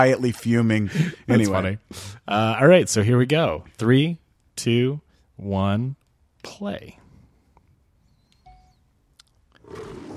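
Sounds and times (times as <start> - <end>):
speech: 0.0 - 7.0
Leo the lion roaring in a film studio logo: 9.6 - 10.1.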